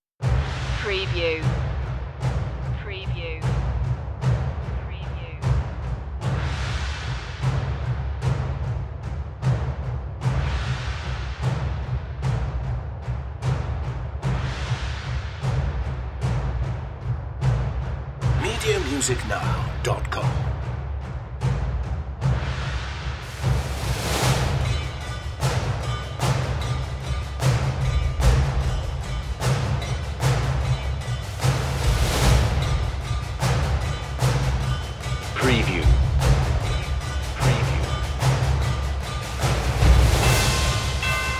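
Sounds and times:
percussion: 0.0 - 41.3.

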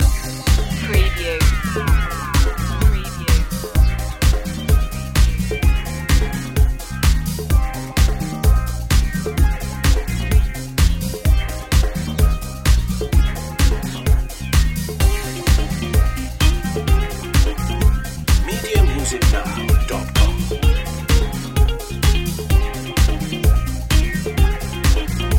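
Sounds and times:
pop city loop: 0.0 - 25.3.

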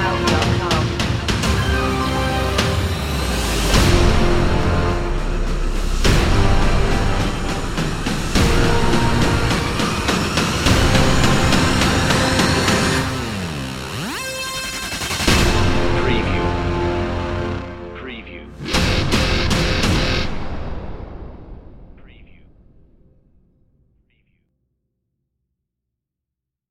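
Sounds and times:
energetic music without choir: 0.0 - 20.6.

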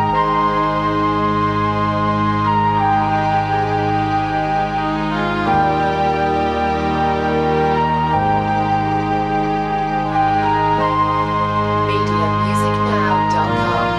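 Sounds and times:
melancholic flute: 0.0 - 13.9.

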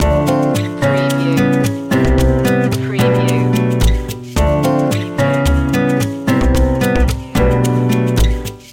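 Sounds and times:
lounge music: 0.0 - 8.7.

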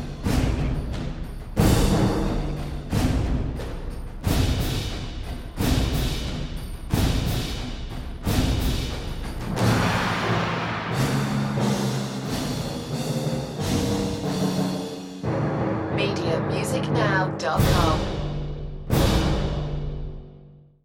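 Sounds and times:
percussion mix: 0.0 - 20.4.

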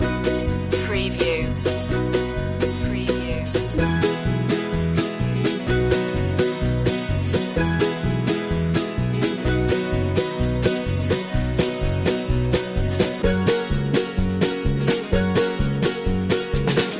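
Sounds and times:
cowboy hat music loop: 0.0 - 16.9.

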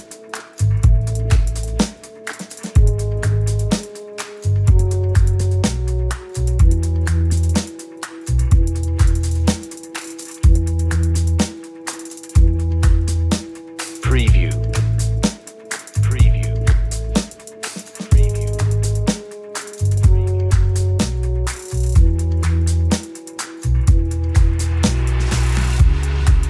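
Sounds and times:
drums: 0.0 - 26.4
bass: 0.6 - 1.9, 2.8 - 3.8, 4.4 - 7.6, 8.3 - 9.6, 10.4 - 11.5, 12.4 - 13.4, 14.0 - 15.3, 16.0 - 17.2, 18.1 - 19.2, 19.8 - 23.0, 23.6 - 26.4.

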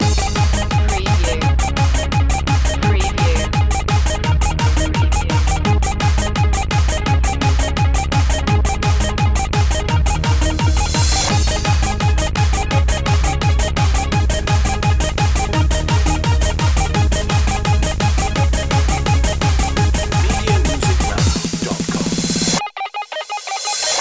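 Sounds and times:
bubblegum beat loop: 0.0 - 23.9.

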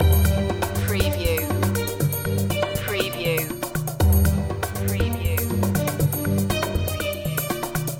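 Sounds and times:
ethno breakbeat loop: 0.0 - 7.9.

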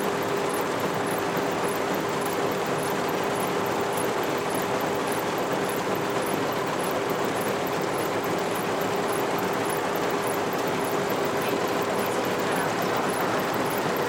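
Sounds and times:
conveyor belt moving: 0.0 - 14.0.

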